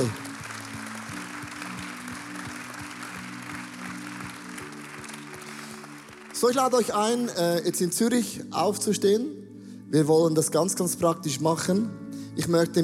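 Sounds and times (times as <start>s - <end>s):
big applause: 0.0s - 7.7s
speech: 6.4s - 12.8s.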